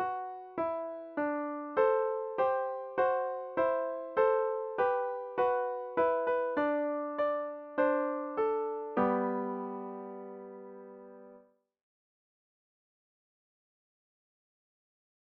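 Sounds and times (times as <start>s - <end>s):
slow Christmas song: 0.0s - 11.5s.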